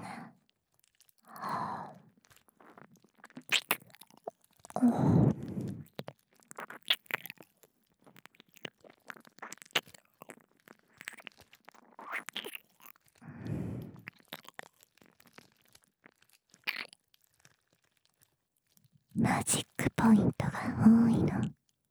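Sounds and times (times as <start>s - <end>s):
licking both ears ASMR: 1.2s - 18.1s, 19.2s - 21.5s
deep kissing sounds ASMR: 3.3s - 4.1s, 4.7s - 7.5s, 11.0s - 14.5s, 19.2s - 21.5s.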